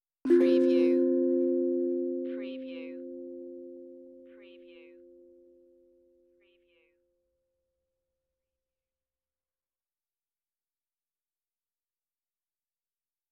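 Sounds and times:
meditative tongue drum tone: 0:00.3 - 0:05.7.

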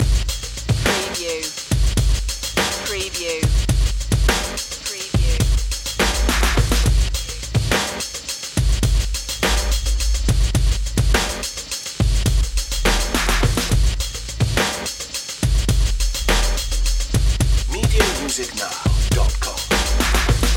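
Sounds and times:
night games music loop: 0:00.0 - 0:08.1, 0:09.6 - 0:20.5.

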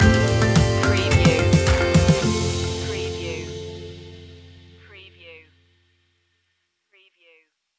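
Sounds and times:
taking flight music stinger: 0:00.0 - 0:05.0.

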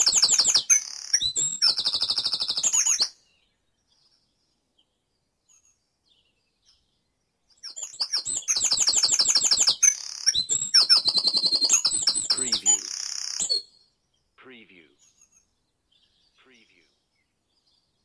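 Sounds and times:
bird song: 0:00.0 - 0:18.0.

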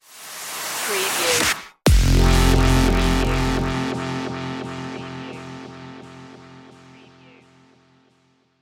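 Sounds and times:
music stinger: 0:01.9 - 0:08.5.

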